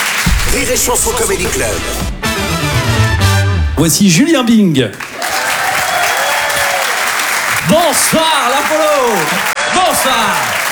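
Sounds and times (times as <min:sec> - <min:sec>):
comedy club audience at the Apollo applauding a comedian: 0:00.0 - 0:01.9, 0:04.9 - 0:10.6
speech: 0:00.5 - 0:02.6, 0:03.8 - 0:05.3, 0:07.7 - 0:10.6.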